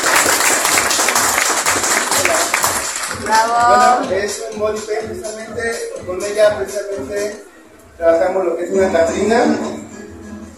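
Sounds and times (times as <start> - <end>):
audience applause: 0.0 - 3.4
speech: 3.3 - 9.8.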